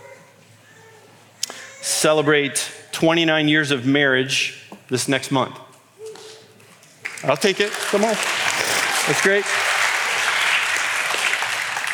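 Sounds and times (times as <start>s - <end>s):
speech: 1.8s - 5.7s, 7.2s - 8.4s, 9.1s - 9.7s
audience clapping: 7.0s - 11.9s.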